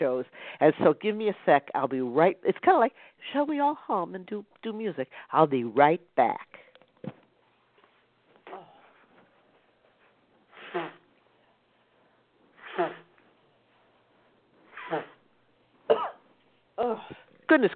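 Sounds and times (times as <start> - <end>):
speech: 0.0 - 7.2, 16.8 - 17.7
honking nose-blowing: 10.5 - 11.1, 12.6 - 13.2, 14.7 - 15.2
sneeze: 10.6 - 11.0, 12.6 - 13.1, 14.7 - 15.2.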